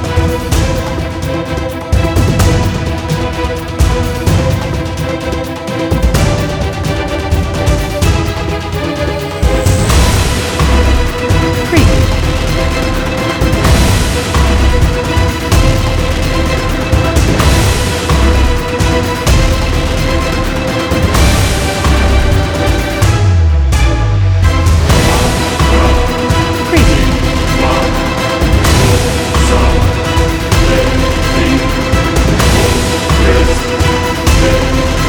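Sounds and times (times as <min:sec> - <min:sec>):
cinematic epic orchestral strings for an action film trailer: 0:00.0 - 0:35.0.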